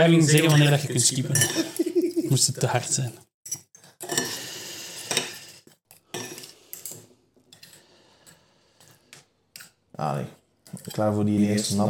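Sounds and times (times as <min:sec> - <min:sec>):
speech: 0:00.0 - 0:03.6, 0:10.0 - 0:11.8
cutlery clinking and scraping on a plate while eating: 0:00.3 - 0:01.9, 0:03.5 - 0:04.4, 0:05.0 - 0:07.8
laughter: 0:01.5 - 0:02.6.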